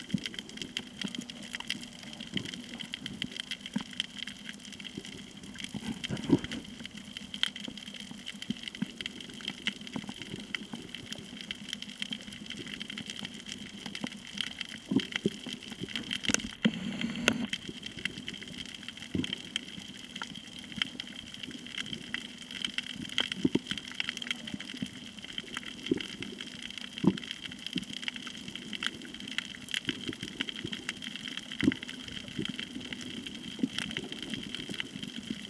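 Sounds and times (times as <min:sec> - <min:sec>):
snorkeling at Koh Tao: 0:00.0 - 0:35.4.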